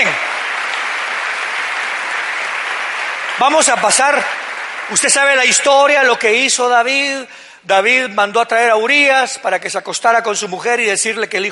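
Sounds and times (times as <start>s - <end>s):
audience applause: 0.0s - 6.3s
speech: 3.4s - 11.5s.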